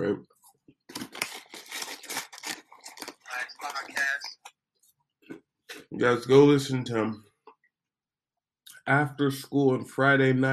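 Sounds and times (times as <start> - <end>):
speech: 0.0 - 0.4, 6.0 - 7.3, 8.8 - 10.5
popcorn bag crinkling and rustling: 0.9 - 4.5.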